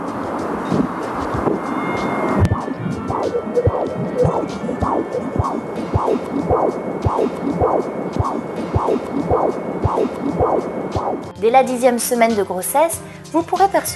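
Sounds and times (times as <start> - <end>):
constant staticky hiss: 0.0 - 6.0
fetal heartbeat through a fetal Doppler: 0.7 - 11.3
speech: 11.6 - 13.9.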